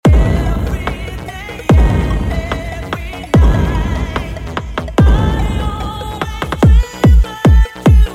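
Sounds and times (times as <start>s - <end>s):
hit: 0.0s - 8.0s.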